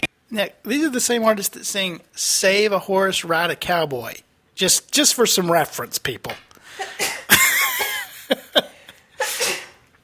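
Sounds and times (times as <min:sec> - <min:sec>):
speech: 0:00.3 - 0:07.0
sneeze: 0:06.8 - 0:07.3, 0:09.2 - 0:09.8.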